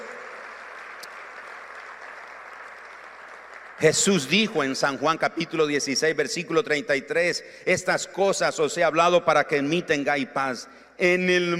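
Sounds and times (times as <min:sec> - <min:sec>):
audience applause: 0:00.0 - 0:04.3
speech: 0:03.8 - 0:11.5.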